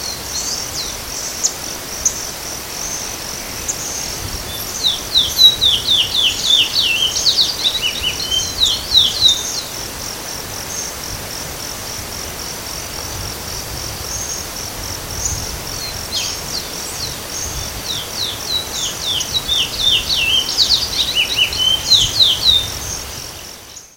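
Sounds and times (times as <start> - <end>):
Sporophila angolensis calling: 3.6 - 9.7, 17.4 - 23.0.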